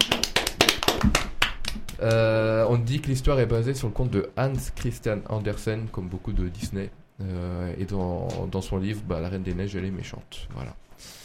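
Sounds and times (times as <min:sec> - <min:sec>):
clapping: 0:00.0 - 0:02.2
speech: 0:02.0 - 0:11.2.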